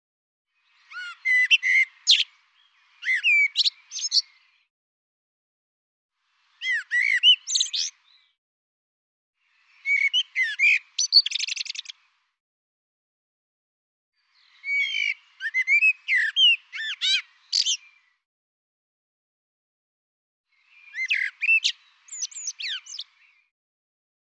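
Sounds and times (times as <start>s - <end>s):
bird song with chirps whistles and trilled notes: 0.5s - 4.7s, 6.2s - 8.4s, 9.4s - 12.3s, 14.2s - 18.2s, 20.5s - 23.5s.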